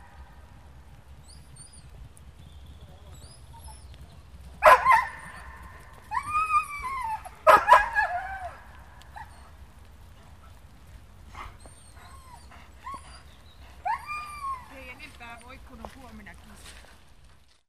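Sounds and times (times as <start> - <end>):
greyhound: 3.1 - 17.0.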